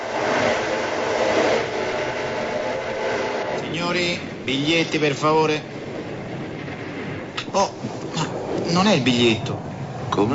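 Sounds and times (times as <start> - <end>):
train running on rails: 0.0 - 10.3
speech: 3.9 - 5.8, 7.6 - 7.8, 8.7 - 10.3.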